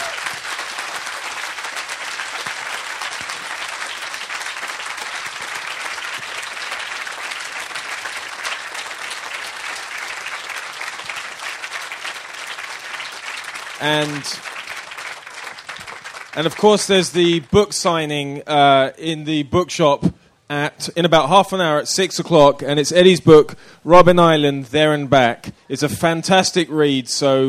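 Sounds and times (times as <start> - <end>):
audience applause: 0.0 - 17.6
speech: 13.8 - 14.5, 16.4 - 27.4.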